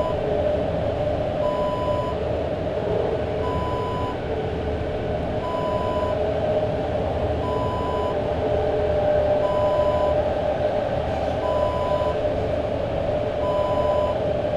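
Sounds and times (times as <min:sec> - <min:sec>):
subway train ambience: 0:00.0 - 0:14.5.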